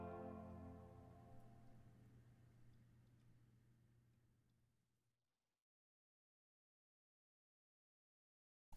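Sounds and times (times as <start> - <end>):
chorale: 0.0 - 1.6.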